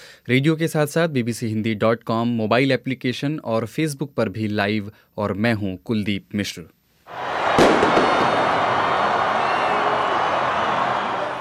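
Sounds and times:
speech: 0.2s - 6.8s
celebrating street crowd shouting and cheering after football semifinal: 7.1s - 11.4s
firework bang: 7.3s - 8.9s.

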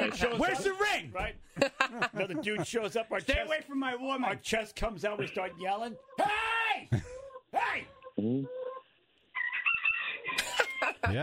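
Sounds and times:
laughter: 0.0s - 3.7s, 6.7s - 7.3s, 10.4s - 11.2s
speech: 0.2s - 8.6s, 11.0s - 11.2s
rooster crowing aggressively: 9.4s - 11.0s.

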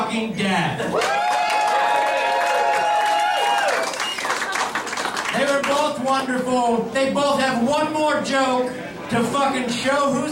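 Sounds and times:
speech: 0.1s - 1.4s, 5.4s - 10.3s
crowd cheering: 0.9s - 5.8s.

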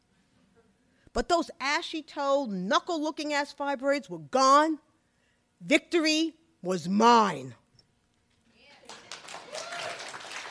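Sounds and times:
speech: 1.2s - 4.9s, 5.6s - 7.6s
audience clapping: 8.8s - 10.4s
crowd cheering or whooping: 9.0s - 10.4s.

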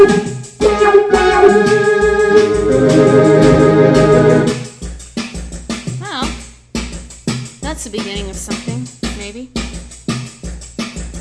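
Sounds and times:
Hammond organ tune: 0.0s - 4.7s.

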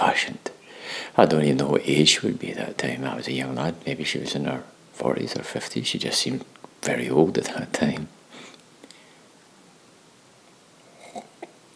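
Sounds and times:
low steady hiss: 0.0s - 11.7s
speech: 0.2s - 8.2s
person sipping coffee: 10.8s - 11.7s.

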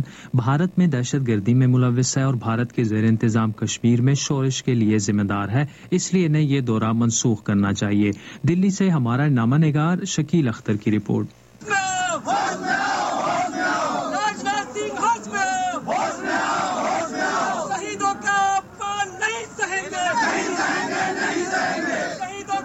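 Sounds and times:
speech: 0.0s - 12.8s
crowd of protesters chanting slogans: 11.6s - 22.6s.

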